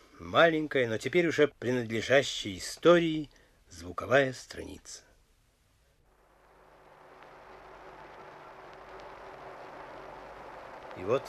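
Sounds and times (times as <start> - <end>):
speech: 0.3 - 5.1, 11.0 - 11.2
rumbling drone of airplanes on archival tape: 6.1 - 11.2.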